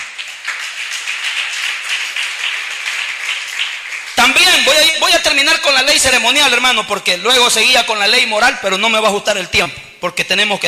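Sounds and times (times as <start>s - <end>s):
audience applause: 0.0s - 5.1s
speech: 4.3s - 10.6s.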